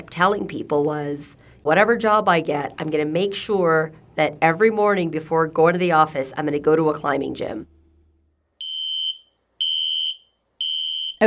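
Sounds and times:
speech: 0:00.0 - 0:07.8
fire alarm beeping: 0:08.6 - 0:11.2.

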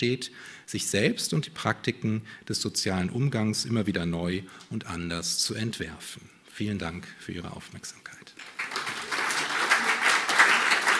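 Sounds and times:
speech: 0:00.0 - 0:08.5
audience applause: 0:08.4 - 0:10.9.

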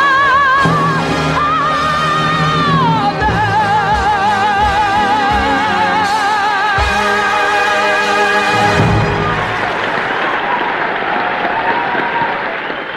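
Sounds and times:
last notes of music: 0:00.0 - 0:10.5
Broadway audience standing ovation applause: 0:08.4 - 0:12.9.

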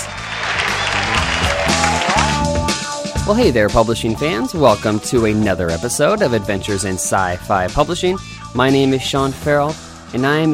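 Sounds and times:
crowd cheering and applause sound effect: 0:00.0 - 0:03.2
speech: 0:03.3 - 0:10.5.

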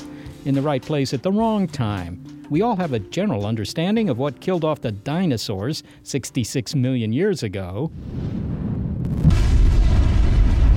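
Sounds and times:
speech: 0:00.4 - 0:08.4
asteroid impact explosion: 0:07.9 - 0:10.7.

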